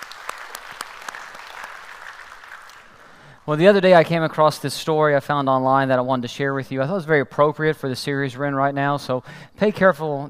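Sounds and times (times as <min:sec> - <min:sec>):
church congregation applauding to welcome a family: 0:00.0 - 0:03.4
speech: 0:03.4 - 0:10.2.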